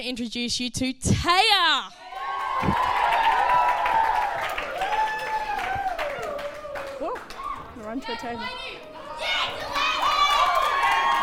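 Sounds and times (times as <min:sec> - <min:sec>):
speech: 0:00.0 - 0:02.0, 0:02.6 - 0:03.1, 0:07.8 - 0:09.4
crowd whooping and cheering: 0:02.0 - 0:07.8, 0:09.0 - 0:11.2
audience applause: 0:02.0 - 0:08.6, 0:09.2 - 0:11.2.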